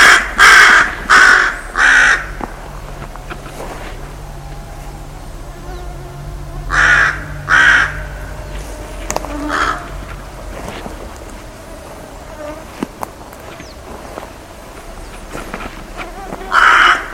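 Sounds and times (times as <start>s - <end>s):
bird calling with harsh raspy caws: 0.0s - 3.4s, 4.0s - 10.8s, 14.8s - 17.1s.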